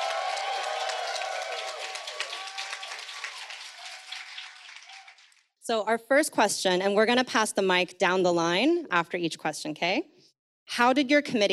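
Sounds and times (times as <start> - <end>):
audience applause: 0.0 - 5.5
speech: 5.7 - 10.1, 10.8 - 11.5.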